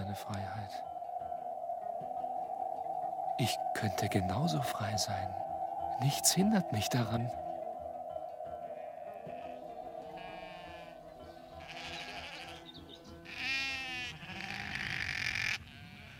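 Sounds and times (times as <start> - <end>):
low droning background: 0.0 - 11.8
speech: 0.2 - 1.0, 3.4 - 7.4
sheep bleating: 9.1 - 16.1.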